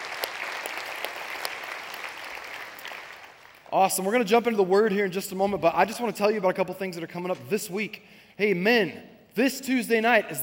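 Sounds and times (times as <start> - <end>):
church congregation clapping to welcome guests: 0.0 - 4.3
speech: 3.7 - 10.4.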